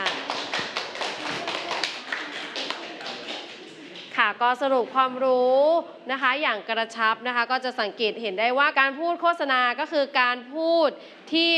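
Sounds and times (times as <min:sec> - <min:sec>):
audience clapping: 0:00.0 - 0:04.2
speech: 0:04.3 - 0:11.5.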